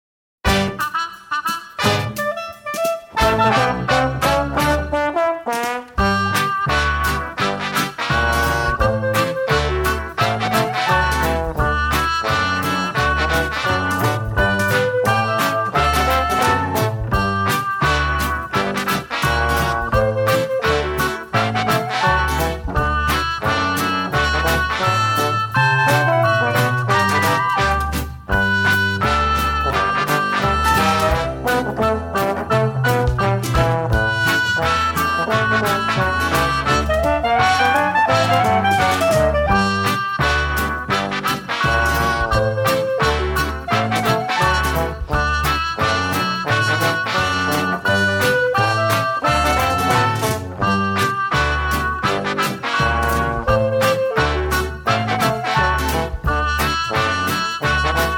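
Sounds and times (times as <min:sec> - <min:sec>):
dixieland jazz: 0:00.4 - 0:58.1.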